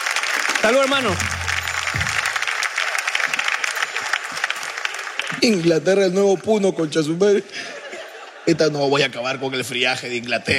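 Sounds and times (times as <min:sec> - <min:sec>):
audience applause: 0:00.0 - 0:06.2
speech: 0:00.6 - 0:02.0, 0:05.3 - 0:07.7, 0:08.5 - 0:10.5
laughter: 0:07.4 - 0:09.3.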